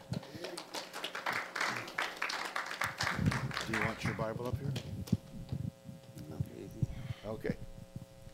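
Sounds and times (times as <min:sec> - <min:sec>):
audience clapping in welcome: 0:00.0 - 0:05.2
speech: 0:03.7 - 0:05.0, 0:07.3 - 0:07.6.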